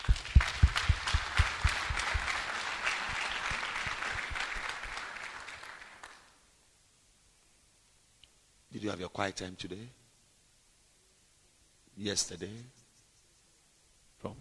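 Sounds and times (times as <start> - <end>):
audience clapping: 0.0 - 6.4
speech: 8.8 - 10.0, 12.0 - 12.8.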